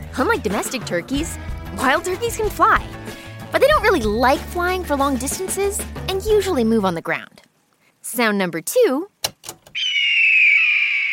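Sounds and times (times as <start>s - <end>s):
speech: 0.2s - 7.3s, 8.1s - 9.6s
red-tailed hawk screaming: 9.8s - 11.1s.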